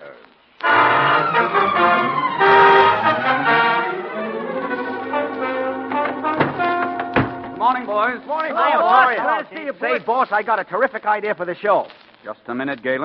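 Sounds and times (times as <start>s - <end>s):
car horn tooting: 0.6s - 3.8s, 4.7s - 8.7s
speech: 9.1s - 13.0s.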